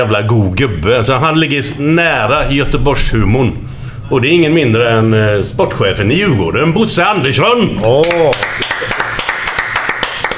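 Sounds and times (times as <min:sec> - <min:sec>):
speech: 0:00.0 - 0:09.0
applause for arriving guest: 0:08.0 - 0:10.3.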